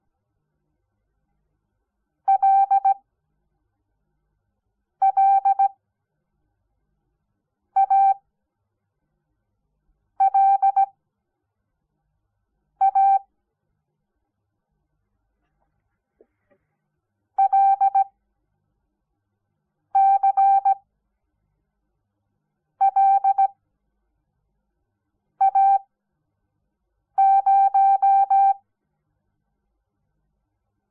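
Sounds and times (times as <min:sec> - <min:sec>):
morse code beeps: 0:02.3 - 0:03.0, 0:05.0 - 0:05.7, 0:07.8 - 0:08.2, 0:10.2 - 0:10.9, 0:12.8 - 0:13.2, 0:17.4 - 0:18.1, 0:20.0 - 0:20.8, 0:22.8 - 0:23.5, 0:25.4 - 0:25.8, 0:27.2 - 0:28.6.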